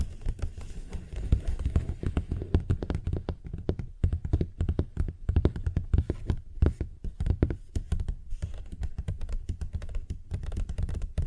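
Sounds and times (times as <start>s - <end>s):
fingers tapping and scratching on a paper bag: 0.0s - 11.2s.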